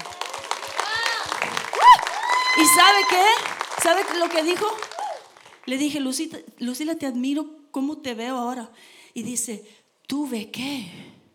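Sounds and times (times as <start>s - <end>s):
applause: 0.0s - 6.0s
speech: 2.6s - 4.9s, 5.6s - 11.2s.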